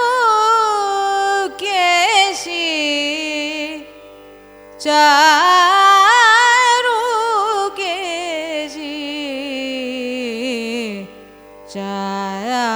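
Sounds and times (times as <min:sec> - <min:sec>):
Carnatic music in a raga: 0:00.0 - 0:12.7.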